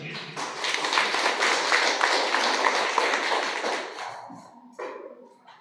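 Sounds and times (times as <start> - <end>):
audience applause: 0.3 - 4.1.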